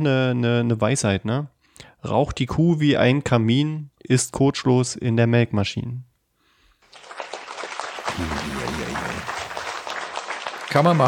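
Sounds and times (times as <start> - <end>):
speech: 0.0 - 6.1, 8.2 - 8.9, 10.7 - 11.0
crowd applause: 6.8 - 11.0.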